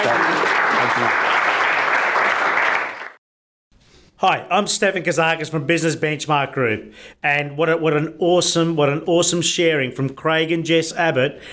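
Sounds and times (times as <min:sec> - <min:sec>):
audience applause: 0:00.0 - 0:03.2
speech: 0:01.0 - 0:01.2, 0:04.2 - 0:11.5.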